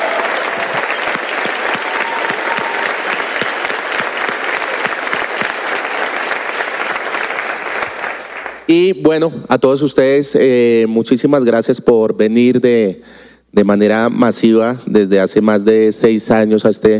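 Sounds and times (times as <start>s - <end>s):
audience applause: 0.0s - 8.7s
speech: 8.7s - 16.9s.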